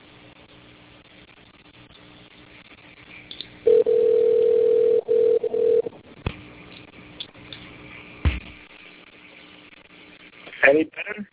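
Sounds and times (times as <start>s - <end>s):
mid-pitched phone dial tone while calling back: 3.7s - 5.9s.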